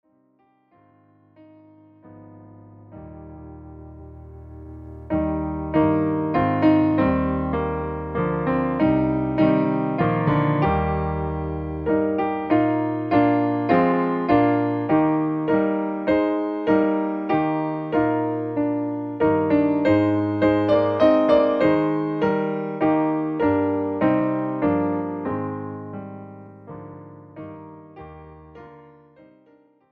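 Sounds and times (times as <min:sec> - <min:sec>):
piano: 0:00.0 - 0:29.9.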